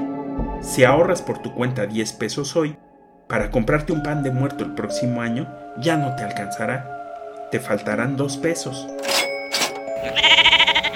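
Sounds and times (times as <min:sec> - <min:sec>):
speech: 0:00.6 - 0:09.1
sheep bleating: 0:10.0 - 0:10.9.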